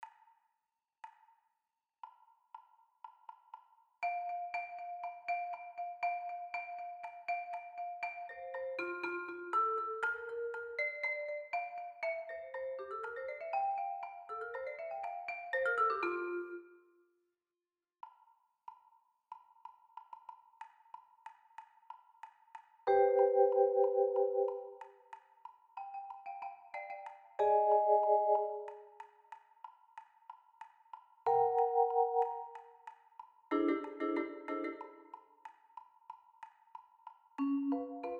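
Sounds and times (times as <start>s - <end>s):
vibraphone mallets: 4.0s - 16.8s, 22.9s - 25.1s, 25.8s - 29.1s, 31.3s - 35.3s, 37.4s - 38.1s.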